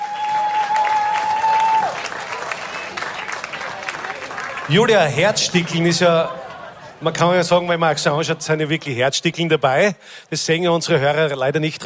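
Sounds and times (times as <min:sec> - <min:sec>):
audience applause: 0:00.0 - 0:06.9
speech: 0:04.7 - 0:06.4, 0:07.0 - 0:11.8
laughter: 0:05.2 - 0:07.7.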